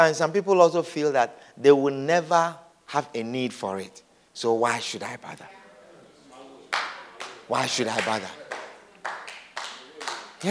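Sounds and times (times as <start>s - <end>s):
speech: 0.0s - 5.6s, 7.5s - 8.4s
weak audience clapping: 6.6s - 10.4s.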